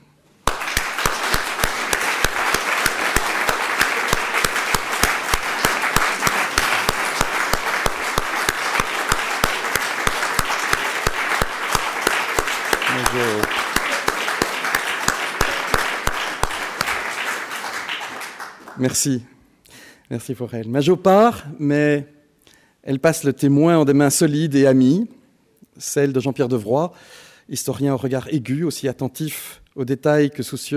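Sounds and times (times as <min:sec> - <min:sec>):
audience applause: 0:00.5 - 0:19.0
speech: 0:18.8 - 0:19.3, 0:20.1 - 0:22.2, 0:22.8 - 0:25.2, 0:25.8 - 0:30.7.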